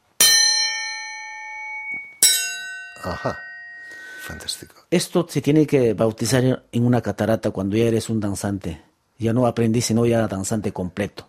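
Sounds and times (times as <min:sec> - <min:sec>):
iron dance scissors clanging together: 0:01.7 - 0:03.8
speech: 0:03.0 - 0:03.5, 0:04.3 - 0:11.2.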